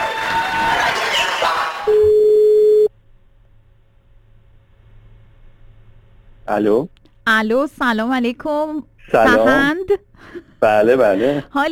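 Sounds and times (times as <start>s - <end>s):
dense broadband noise: 0.0s - 11.7s
telephone tone on a call to a radio listener: 1.9s - 2.9s
speech: 6.5s - 11.7s.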